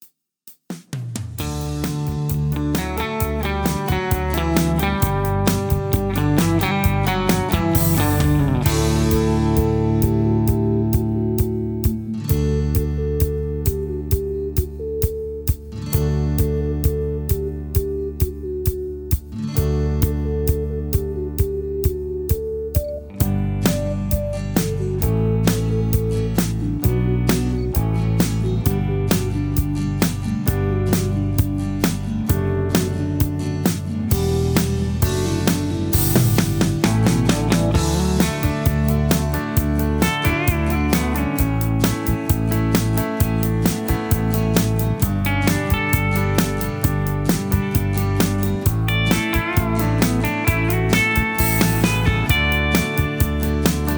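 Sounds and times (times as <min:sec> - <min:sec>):
instrumental music with leads: 0:01.4 - 0:53.9.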